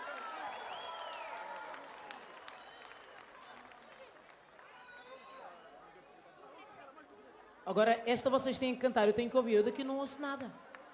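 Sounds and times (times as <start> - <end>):
shrill whistles and cheers: 0.0 - 3.6, 4.6 - 5.9
concert crowd clapping: 0.0 - 5.6, 10.4 - 10.9
speech: 7.7 - 10.6.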